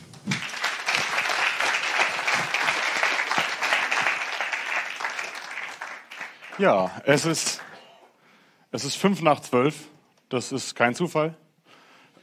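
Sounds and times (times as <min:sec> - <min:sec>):
audience applause: 0:00.0 - 0:07.9
speech: 0:06.6 - 0:07.6, 0:08.7 - 0:11.4.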